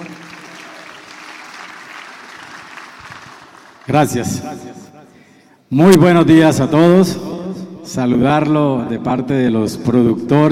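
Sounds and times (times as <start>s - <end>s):
audience applause: 0.0s - 4.1s
speech: 3.9s - 4.9s, 5.7s - 7.3s, 7.9s - 10.5s.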